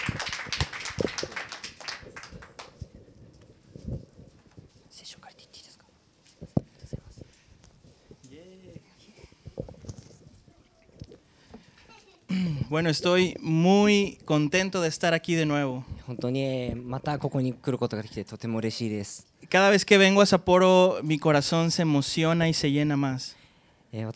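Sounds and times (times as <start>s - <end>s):
audience clapping: 0.0s - 2.9s
speech: 12.7s - 24.1s.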